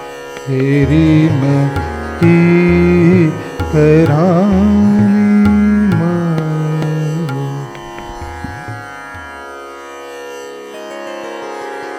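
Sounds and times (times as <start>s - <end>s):
fast kheyaal vocal piece: 0.5s - 8.8s.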